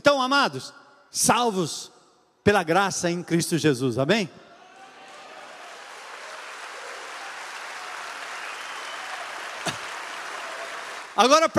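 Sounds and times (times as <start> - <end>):
speech: 0.1 - 4.4, 11.2 - 11.5
audience applauding: 4.7 - 11.5.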